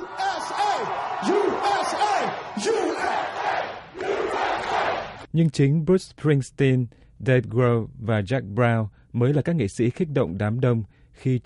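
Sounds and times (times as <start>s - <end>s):
large crowd cheering and chanting: 0.0s - 5.3s
speech: 5.4s - 11.4s.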